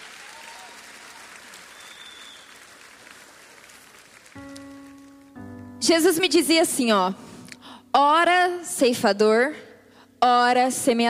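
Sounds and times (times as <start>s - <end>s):
round of applause: 0.0s - 5.1s
speech: 5.8s - 7.2s, 7.9s - 9.6s, 10.2s - 11.0s.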